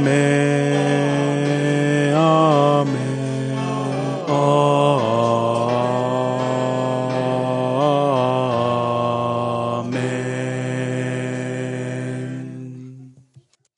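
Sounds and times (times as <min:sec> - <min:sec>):
alto voice singing: 0:00.0 - 0:13.2.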